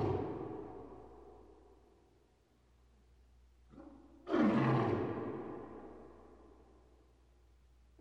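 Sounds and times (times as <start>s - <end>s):
big cat roaring in a cage: 4.2s - 5.4s.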